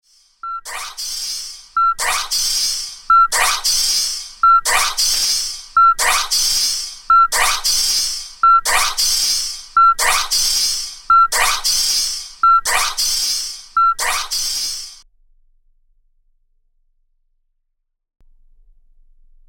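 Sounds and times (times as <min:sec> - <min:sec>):
beep: 0:00.4 - 0:01.0, 0:01.7 - 0:15.0.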